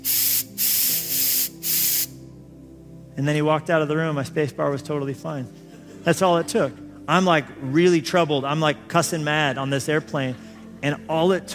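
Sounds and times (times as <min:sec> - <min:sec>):
compressed air can spraying: 0:00.0 - 0:02.2
speech: 0:03.2 - 0:11.5.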